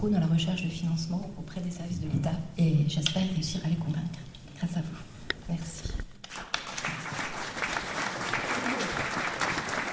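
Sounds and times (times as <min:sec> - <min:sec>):
speech: 0:00.0 - 0:06.0
audience applause: 0:06.3 - 0:09.9.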